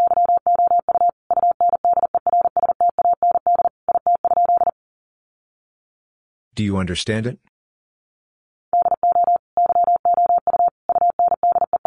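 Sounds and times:
Morse code tone beeping: 0.0s - 4.7s, 8.8s - 11.8s
person speaking: 6.6s - 7.5s.

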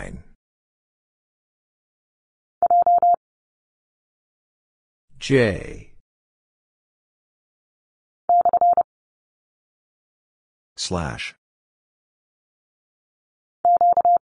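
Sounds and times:
morse code letter q at 30 wpm: 2.7s - 3.2s, 8.3s - 8.9s, 13.7s - 14.2s.

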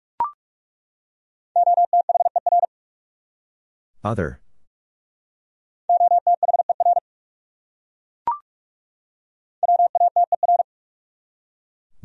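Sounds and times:
Morse code tones at 45 wpm: 1.6s - 2.7s, 5.9s - 7.0s, 9.6s - 10.6s
speech: 4.0s - 4.4s.

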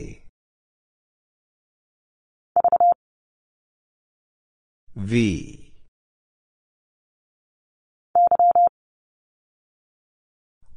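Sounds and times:
morse code single character at 30 wpm: 2.6s - 3.0s, 8.2s - 8.7s.

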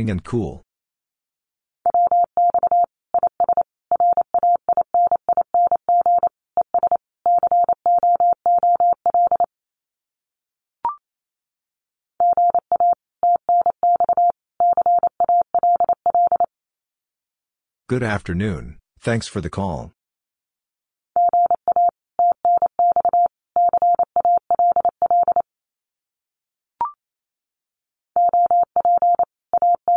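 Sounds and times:
speech: 0.0s - 0.6s, 17.9s - 20.0s
rapid Morse code at 28 words per minute: 1.9s - 9.5s, 12.2s - 16.5s, 21.2s - 25.4s, 28.2s - 29.9s.

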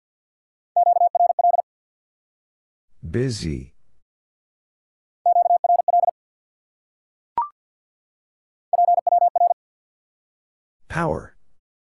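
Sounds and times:
rapid Morse code tones at 50 wpm: 0.8s - 1.6s, 5.3s - 6.1s, 8.7s - 9.6s
speech: 3.0s - 3.7s, 10.9s - 11.3s.

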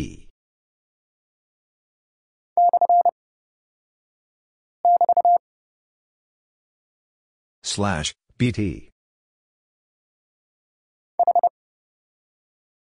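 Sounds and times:
Morse code at 30 wpm: 2.6s - 3.1s, 4.8s - 5.4s, 11.2s - 11.5s.

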